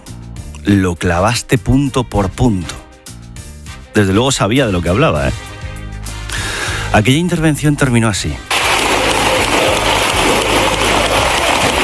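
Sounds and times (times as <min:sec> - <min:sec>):
speech: 0:00.6 - 0:02.8, 0:04.0 - 0:05.5, 0:06.9 - 0:08.5
parliamentary ovation applause: 0:08.5 - 0:11.8.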